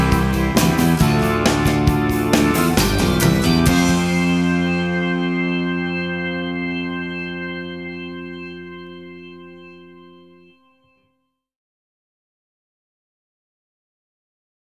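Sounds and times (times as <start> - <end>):
fruity organ: 0.0 - 11.0.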